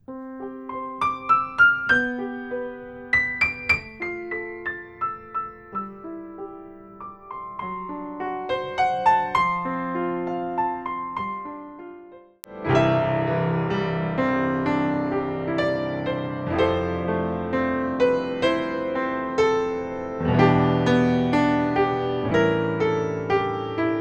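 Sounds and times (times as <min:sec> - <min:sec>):
piano: 0:00.0 - 0:23.9.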